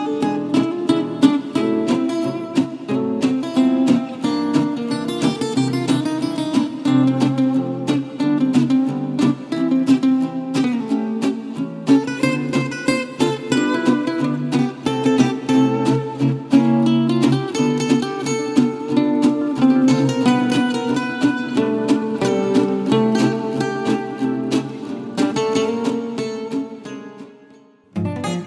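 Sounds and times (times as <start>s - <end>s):
gypsy swing guitars playing: 0.0s - 28.4s.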